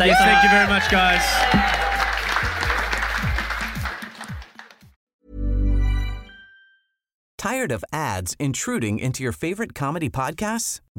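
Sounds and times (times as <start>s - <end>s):
speech: 0.0s - 1.8s, 7.4s - 10.9s
scattered cheers: 0.0s - 4.8s
audience applause: 0.0s - 4.9s.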